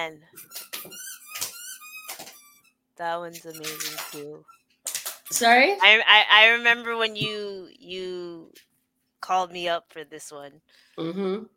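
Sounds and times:
speech: 0.0s - 1.2s, 3.0s - 4.6s, 5.3s - 11.5s
dog playing with squeaky toy: 0.4s - 5.8s.

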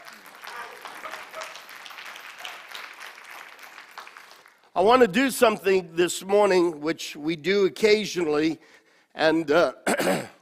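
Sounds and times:
audience applause: 0.0s - 4.8s
speech: 4.8s - 10.4s.

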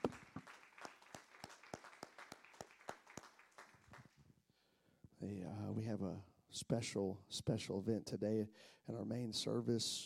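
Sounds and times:
audience clapping hands: 0.0s - 4.2s
speech: 5.2s - 10.0s.

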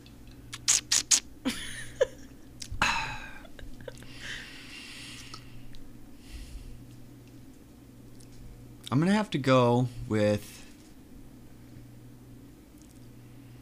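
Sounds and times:
person slurping a drink: 0.5s - 1.2s
speech: 9.0s - 10.6s.

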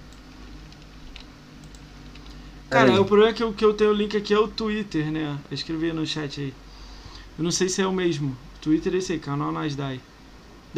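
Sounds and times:
low hum and hiss: 0.0s - 10.7s
computer keyboard typing: 0.4s - 2.4s
speech: 2.7s - 6.6s, 7.4s - 10.1s.

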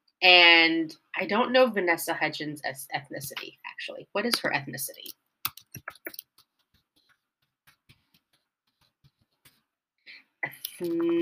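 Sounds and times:
speech: 0.2s - 5.2s, 10.4s - 11.2s
typing equal signs on a computer keyboard: 5.4s - 9.7s.

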